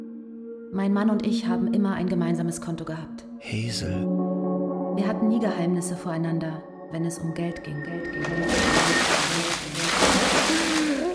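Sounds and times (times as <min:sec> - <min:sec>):
speech: 0:00.7 - 0:04.2, 0:05.0 - 0:10.7
buckets of water poured over someone: 0:08.2 - 0:11.1.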